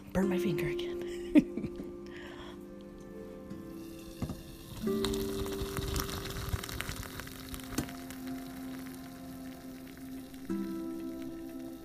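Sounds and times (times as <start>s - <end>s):
speech: 0.1s - 1.7s
coffee pouring into a cup: 3.6s - 11.8s.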